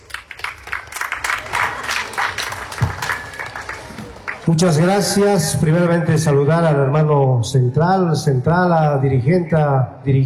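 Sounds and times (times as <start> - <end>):
audience applause: 0.0 - 4.5
speech: 4.5 - 10.2.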